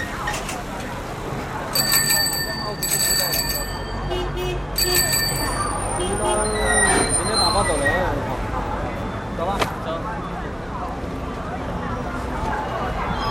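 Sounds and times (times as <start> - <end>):
murmur of voices on Rues de Pékin: 0.0 - 13.2
street traffic on Rues de Pékin: 0.0 - 13.2
bicycle bells ringing: 1.7 - 7.8.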